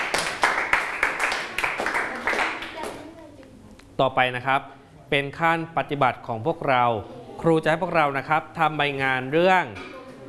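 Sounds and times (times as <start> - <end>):
group of students clapping hands: 0.0 - 3.0
speech: 4.0 - 10.2.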